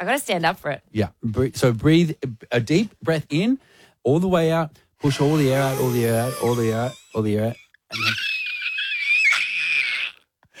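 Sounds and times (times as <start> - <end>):
speech: 0.0 - 8.3
person screaming as hard as possible: 5.1 - 7.0, 7.9 - 10.3.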